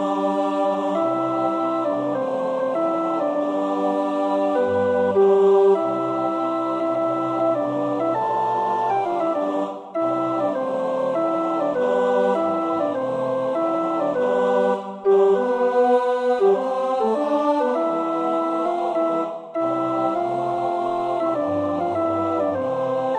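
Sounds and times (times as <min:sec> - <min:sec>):
male voices singing tenor one part: 0:00.0 - 0:23.1.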